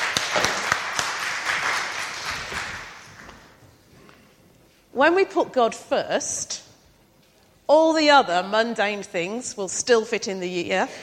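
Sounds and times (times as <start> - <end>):
audience applause: 0.0 - 3.2
speech: 5.0 - 6.6, 7.7 - 11.0.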